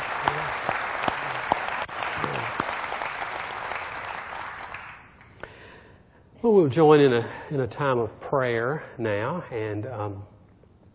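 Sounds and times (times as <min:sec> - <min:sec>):
church congregation applauding during a service: 0:00.0 - 0:05.4
speech: 0:06.4 - 0:10.3.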